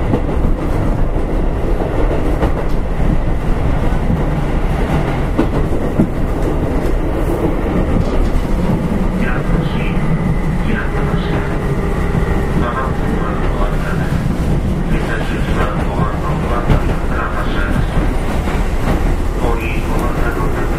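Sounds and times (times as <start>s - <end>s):
Keihan Electric Railway 5000 series train on the Keihan main line: 0.0s - 20.7s
voices murmuring: 6.0s - 20.7s.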